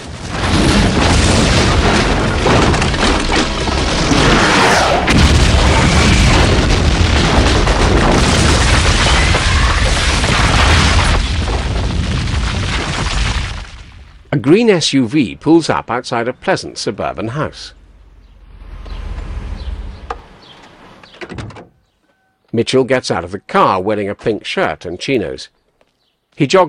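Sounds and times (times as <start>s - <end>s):
missile explosion blowing up a wreck: 0.0s - 14.3s
crackling debris: 0.0s - 14.4s
speech: 14.4s - 17.8s, 22.5s - 25.6s, 26.4s - 26.6s.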